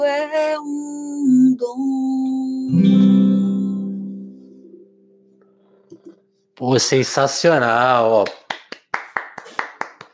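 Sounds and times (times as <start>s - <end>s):
speech: 0.0s - 3.2s, 6.6s - 8.4s
one person clapping hands: 8.2s - 10.1s.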